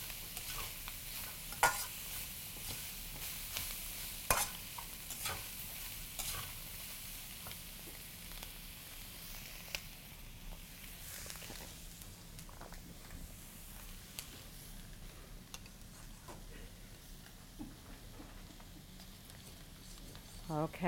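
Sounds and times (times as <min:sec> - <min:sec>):
vegetables sizzling in a pan over the highest flame: 0:00.0 - 0:20.8.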